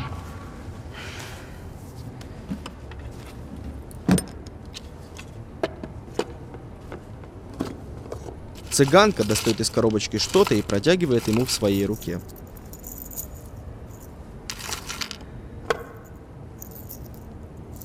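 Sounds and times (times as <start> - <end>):
car engine and road noise driving at night: 1.8 - 17.8
clicks and rattles: 8.6 - 12.4
speech: 8.8 - 12.4.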